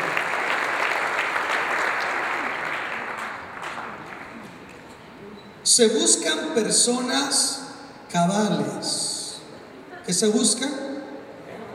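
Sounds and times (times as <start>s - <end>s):
audience applause: 0.0s - 4.6s
speech: 5.8s - 9.0s, 10.1s - 10.8s.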